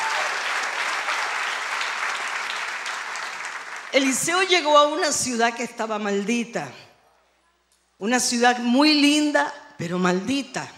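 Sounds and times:
audience applause: 0.0 - 4.0
speech: 3.9 - 6.8, 8.0 - 10.7.

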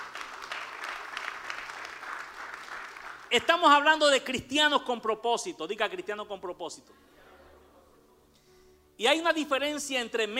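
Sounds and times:
audience applause: 0.0 - 3.3
speech: 3.3 - 7.1, 9.0 - 10.3.

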